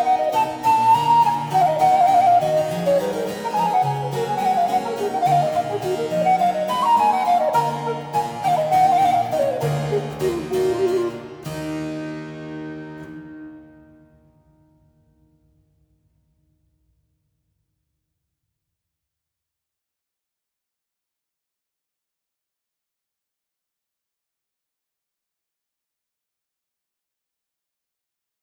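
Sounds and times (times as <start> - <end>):
minuet: 0.0 - 14.0.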